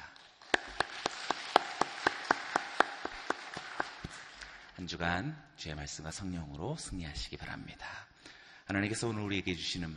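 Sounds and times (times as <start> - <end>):
audience applause: 0.0 - 4.8
speech: 4.8 - 8.0, 8.7 - 9.9.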